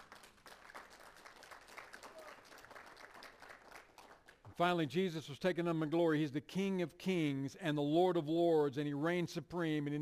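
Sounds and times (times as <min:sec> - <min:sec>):
audience applause: 0:00.0 - 0:04.5
speech: 0:04.6 - 0:10.0.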